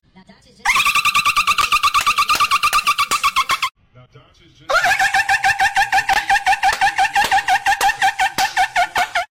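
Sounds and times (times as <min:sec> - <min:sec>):
goofy laugh: 0:00.7 - 0:03.7, 0:04.7 - 0:09.3.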